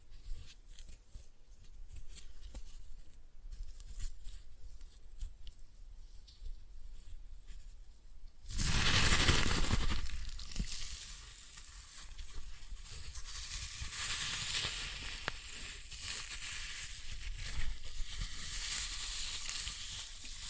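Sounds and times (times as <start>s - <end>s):
floral foam glitter bomb crushing: 8.5s - 20.4s.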